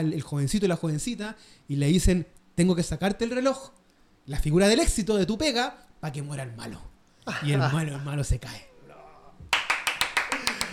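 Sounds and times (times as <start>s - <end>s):
speech: 0.0s - 8.7s
applause: 9.5s - 10.7s
laughter: 10.2s - 10.7s.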